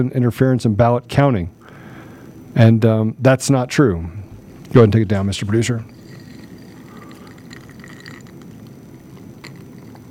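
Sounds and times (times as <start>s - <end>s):
speech: 0.0s - 1.6s, 2.6s - 6.0s
person drinking a sip of water: 5.9s - 10.0s.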